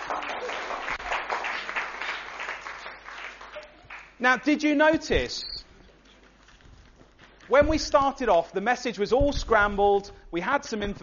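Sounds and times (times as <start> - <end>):
round of applause: 0.0 - 4.2
speech: 4.2 - 5.6, 7.5 - 11.0.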